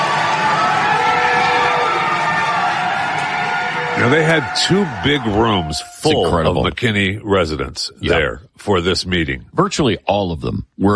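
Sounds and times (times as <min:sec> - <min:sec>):
crowd at a city council meeting: 0:00.0 - 0:06.8
speech: 0:04.0 - 0:10.9.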